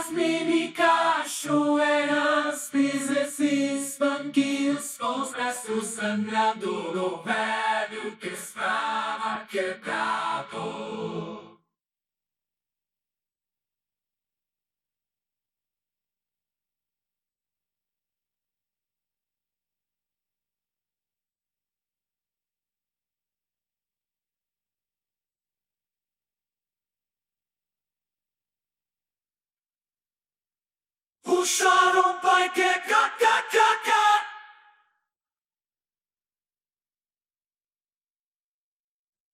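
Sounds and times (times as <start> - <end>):
backing vocals: 0.0 - 11.6, 31.3 - 34.7.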